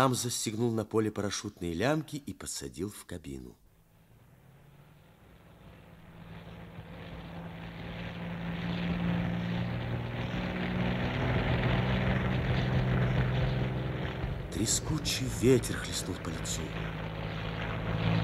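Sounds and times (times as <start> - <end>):
speech: 0.0 - 3.6, 14.6 - 17.2
propeller airplane engine droning: 3.8 - 18.2.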